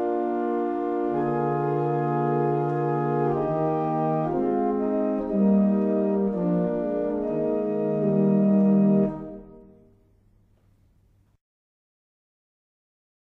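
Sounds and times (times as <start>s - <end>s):
barrel organ playing a double chant: 0.0s - 9.8s.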